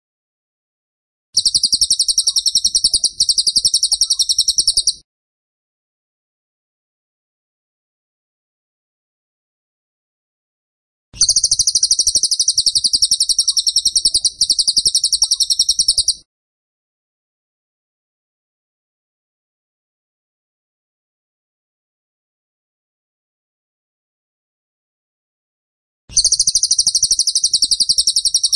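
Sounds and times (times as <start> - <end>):
bird song of fast shrill chirps: 1.4 - 5.0, 11.2 - 16.2, 26.1 - 28.5.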